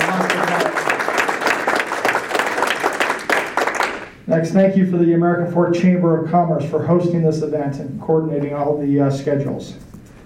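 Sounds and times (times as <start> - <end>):
audience applause: 0.0 - 4.2
speech: 4.4 - 9.8.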